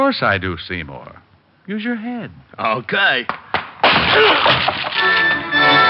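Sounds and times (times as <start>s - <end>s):
speech: 0.1s - 3.4s, 4.1s - 5.8s
plywood door being smashed open: 3.8s - 5.4s.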